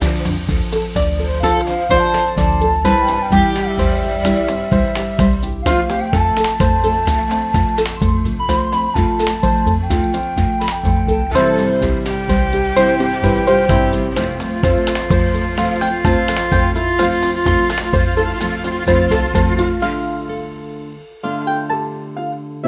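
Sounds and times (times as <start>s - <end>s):
waltz: 0.0s - 22.6s.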